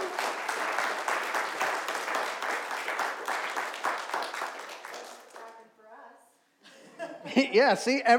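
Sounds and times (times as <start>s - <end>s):
audience applause: 0.0s - 5.5s
speech: 7.4s - 8.1s.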